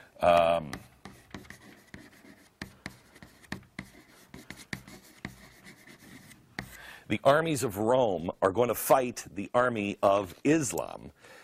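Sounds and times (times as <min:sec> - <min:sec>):
pen scratching in handwriting strokes: 0:00.7 - 0:06.8
speech: 0:07.1 - 0:11.4.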